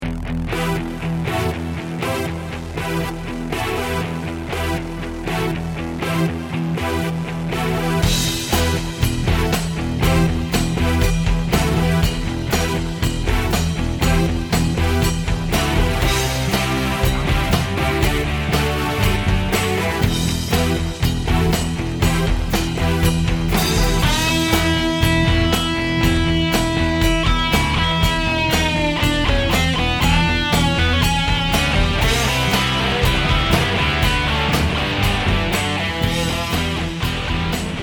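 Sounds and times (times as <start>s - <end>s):
glam rock music: 0.0s - 37.8s.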